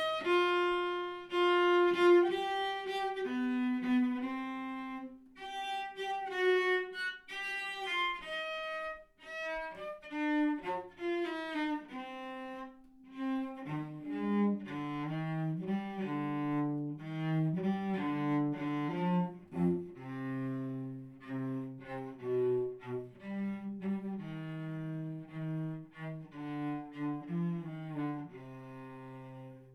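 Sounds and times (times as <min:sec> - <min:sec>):
solo cello playing in rehearsal: 0:00.0 - 0:29.7.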